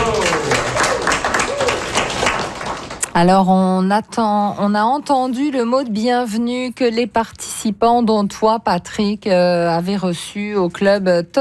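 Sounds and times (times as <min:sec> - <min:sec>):
audience applause welcoming the president of a Toastmasters club in Rimouski: 0:00.0 - 0:03.0
speech: 0:03.2 - 0:11.4.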